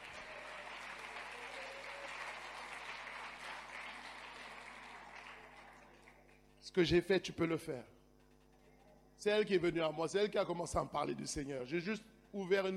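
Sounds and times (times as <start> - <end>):
crowd applauding: 0.0 - 6.4
speech: 6.6 - 8.0, 9.2 - 12.7.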